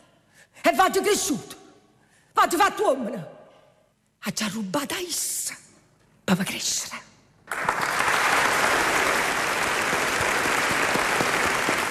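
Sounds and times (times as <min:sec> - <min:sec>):
speech: 0:00.7 - 0:01.6, 0:02.4 - 0:03.4, 0:04.2 - 0:05.6, 0:06.3 - 0:07.8
studio audience applauding: 0:07.5 - 0:11.8.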